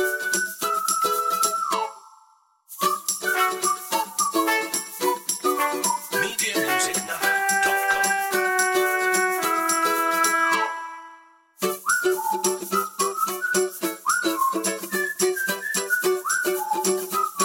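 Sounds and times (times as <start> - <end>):
percussion: 0.0 - 1.8, 2.7 - 10.6, 11.6 - 17.4
whistles: 0.0 - 7.6, 8.6 - 17.4
ukulele: 0.0 - 17.4
trumpet: 3.3 - 11.4.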